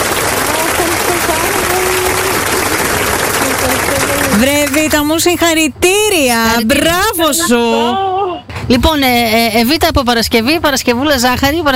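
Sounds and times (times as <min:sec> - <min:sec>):
applause: 0:00.0 - 0:05.0
speech: 0:04.4 - 0:11.7.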